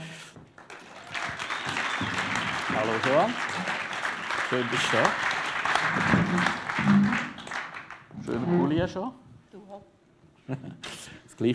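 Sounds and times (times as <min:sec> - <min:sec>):
audience applause and cheering: 0:00.5 - 0:08.4
speech: 0:02.8 - 0:03.5, 0:04.5 - 0:05.2, 0:08.7 - 0:09.2, 0:10.5 - 0:11.5.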